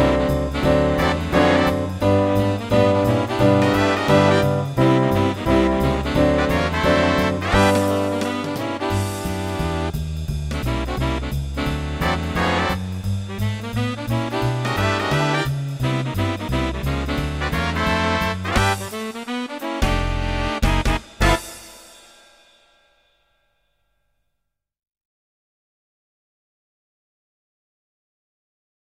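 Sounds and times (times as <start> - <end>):
swing music: 0.0 - 22.3.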